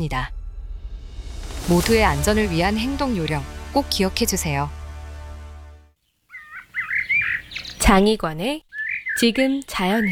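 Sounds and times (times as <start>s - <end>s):
speech: 0.0s - 0.4s, 1.7s - 4.8s, 7.9s - 10.1s
frogs chorusing at a pond in Fuyang Eco Park, Taipei, Taiwan: 6.3s - 8.0s, 8.7s - 10.1s.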